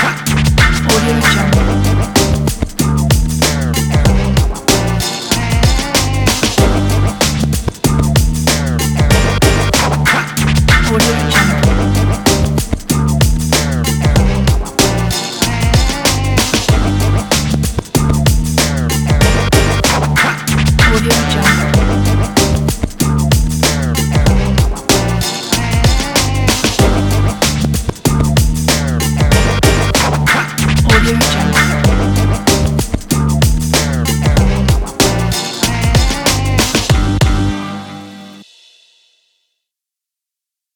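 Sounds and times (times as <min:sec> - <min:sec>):
background old school hip hop music: 0:00.0 - 0:38.4.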